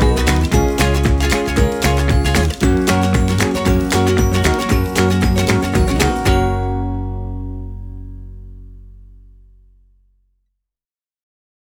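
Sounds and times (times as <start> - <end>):
music: 0.0 - 9.0.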